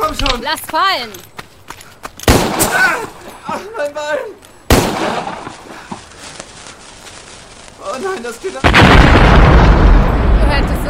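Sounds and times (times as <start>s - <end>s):
speech: 0.2s - 1.3s, 2.4s - 4.4s, 5.0s - 5.5s, 7.8s - 10.8s
dynamite explosion: 4.7s - 5.6s, 8.6s - 10.8s.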